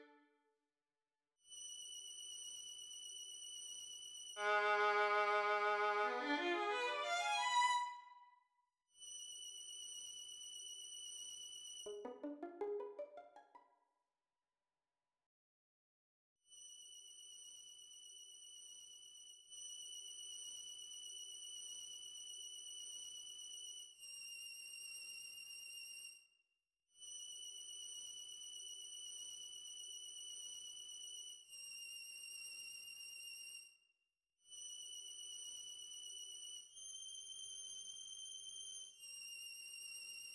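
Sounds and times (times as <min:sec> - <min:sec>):
violin: 0:04.4 - 0:08.2, 0:11.9 - 0:13.6.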